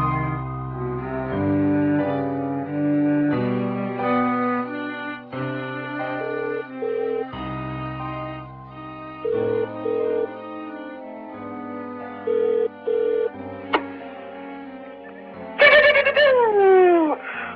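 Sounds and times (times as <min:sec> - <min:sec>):
steady tonal backdrop: 0:00.2 - 0:17.0
home telephone ringing: 0:06.2 - 0:07.3, 0:09.3 - 0:10.3, 0:12.3 - 0:13.3
sweeping falling tones: 0:15.1 - 0:17.2.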